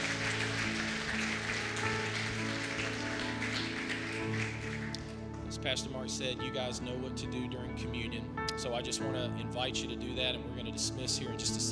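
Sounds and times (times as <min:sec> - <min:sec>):
audience clapping hands in praise: 0:00.0 - 0:05.4
speech: 0:05.6 - 0:11.6.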